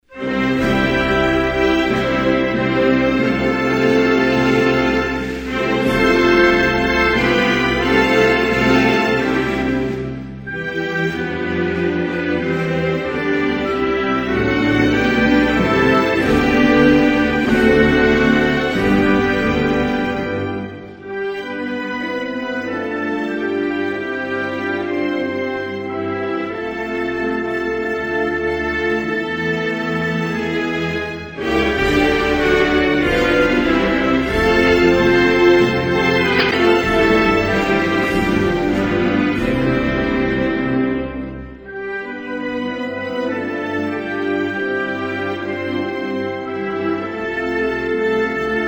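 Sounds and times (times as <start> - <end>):
national anthem: 0.0 - 48.6.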